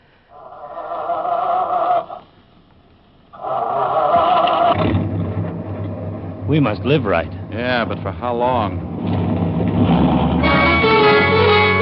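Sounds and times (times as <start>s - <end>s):
truck engine running: 0.0s - 11.8s
truck engine cranking: 3.4s - 11.8s
speech: 6.5s - 9.3s.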